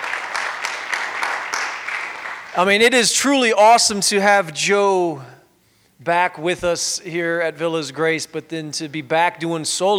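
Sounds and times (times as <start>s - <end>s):
audience applause: 0.0s - 2.6s
speech: 2.6s - 5.4s, 6.0s - 9.9s.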